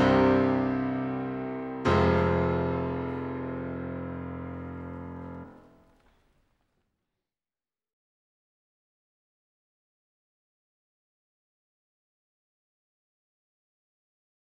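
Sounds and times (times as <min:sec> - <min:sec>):
piano prelude in F minor: 0:00.0 - 0:06.0.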